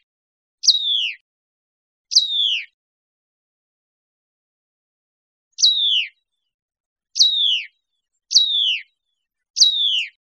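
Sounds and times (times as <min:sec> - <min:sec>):
Hutton's vireo calls: 0:00.6 - 0:01.2, 0:02.1 - 0:02.7, 0:05.6 - 0:06.2, 0:07.2 - 0:07.7, 0:08.3 - 0:08.9, 0:09.6 - 0:10.2.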